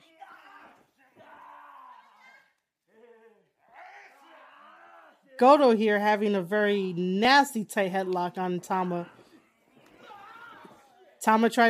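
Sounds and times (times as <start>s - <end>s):
chant-like shouts: 0.0s - 5.4s, 9.0s - 11.2s
wrestling crowd cheering: 0.0s - 5.4s, 7.9s - 11.3s
speech: 5.4s - 9.2s, 11.2s - 11.6s.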